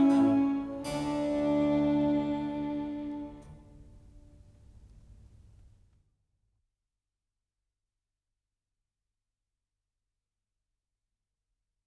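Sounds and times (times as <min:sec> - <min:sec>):
trio sonata for 2 violins and basso continuo in D major: 0:00.0 - 0:04.4.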